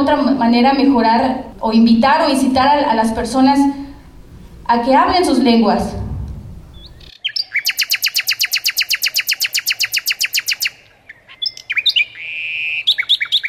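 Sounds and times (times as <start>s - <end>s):
speech: 0.0s - 3.8s, 4.7s - 6.0s
bird trilling: 6.7s - 13.4s.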